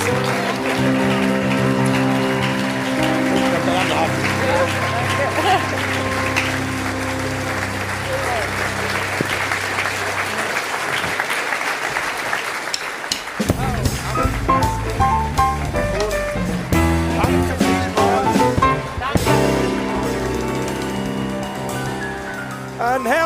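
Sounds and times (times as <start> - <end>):
audience applause: 0.0 - 23.2
laughter: 3.1 - 10.7.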